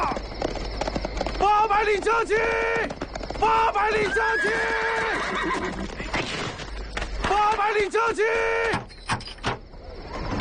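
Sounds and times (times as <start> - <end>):
horse hoofbeats in a quick clattering run: 0.0 - 8.2
speech: 1.8 - 5.9, 7.3 - 8.8.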